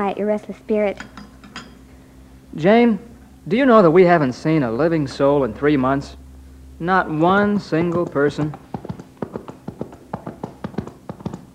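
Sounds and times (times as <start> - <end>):
speech: 0.0 - 1.2, 2.5 - 6.2, 6.8 - 8.6
horse hooves clip-clopping: 7.3 - 11.5.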